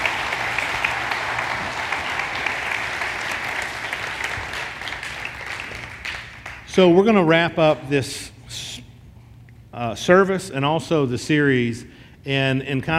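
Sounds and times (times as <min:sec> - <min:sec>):
audience applause: 0:00.0 - 0:06.7
speech: 0:06.8 - 0:08.6, 0:09.8 - 0:12.9.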